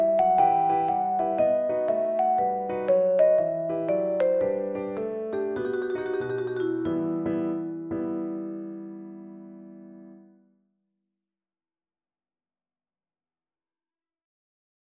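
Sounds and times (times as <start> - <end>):
baroque bourree on vibraphone: 0.0 - 8.1.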